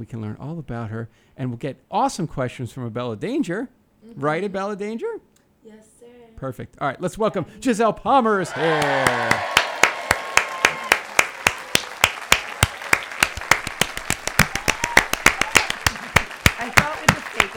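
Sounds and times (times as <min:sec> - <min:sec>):
speech: 0:00.0 - 0:09.5
fake applause sound effect: 0:08.4 - 0:17.5.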